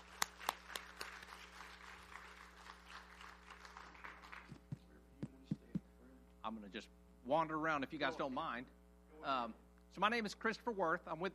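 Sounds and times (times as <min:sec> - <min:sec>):
audience applause: 0:00.0 - 0:04.8
speech: 0:06.5 - 0:11.3.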